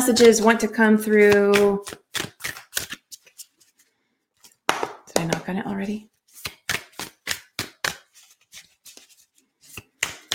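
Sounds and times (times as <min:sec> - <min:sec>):
speech: 0:00.0 - 0:02.3, 0:05.2 - 0:06.1
cards shuffling: 0:01.1 - 0:05.0, 0:06.1 - 0:10.3.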